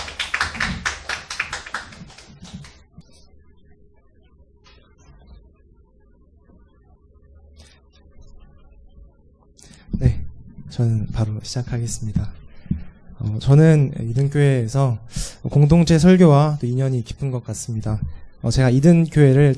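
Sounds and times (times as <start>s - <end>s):
audience applause: 0.0s - 2.8s
speech: 10.8s - 12.4s, 13.2s - 19.5s.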